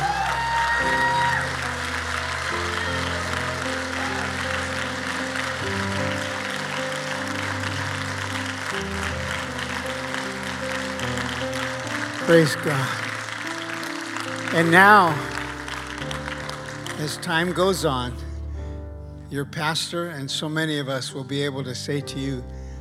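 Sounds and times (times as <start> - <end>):
hand clapping: 0.0 - 17.9
speech: 12.3 - 13.0, 14.6 - 15.3, 17.0 - 18.2, 19.3 - 22.6.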